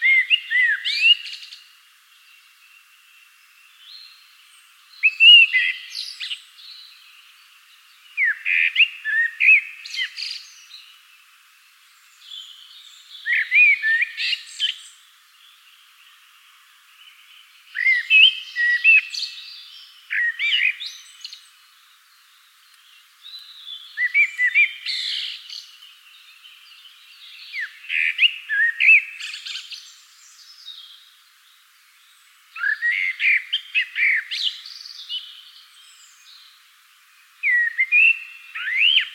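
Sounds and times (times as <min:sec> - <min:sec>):
common blackbird song: 0:00.0 - 0:39.1
faint other birds: 0:00.0 - 0:39.1.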